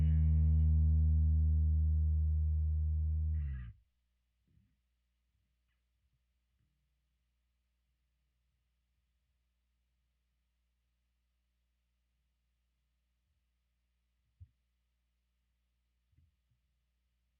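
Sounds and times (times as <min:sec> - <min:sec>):
bass: 0:00.0 - 0:03.8.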